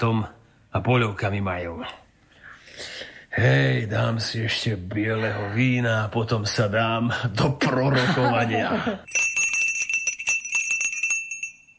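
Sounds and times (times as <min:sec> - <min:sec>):
speech: 0:00.0 - 0:02.0, 0:02.8 - 0:09.3
laughter: 0:07.7 - 0:09.1
small hand bell rung to summon a servant: 0:09.1 - 0:11.7.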